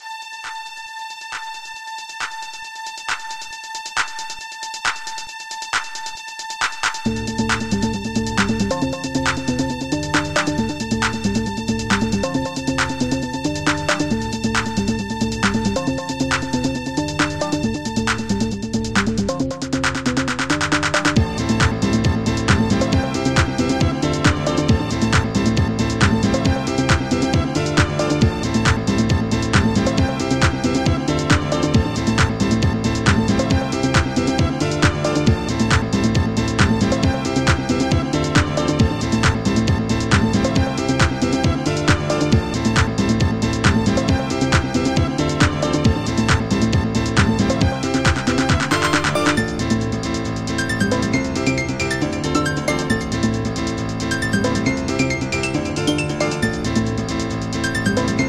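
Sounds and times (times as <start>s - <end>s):
piano: 6.7s - 58.2s.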